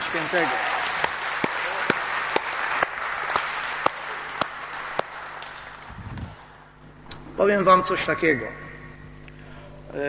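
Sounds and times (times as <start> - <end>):
audience applause: 0.0 - 6.6
speech: 0.1 - 0.7, 7.4 - 8.6.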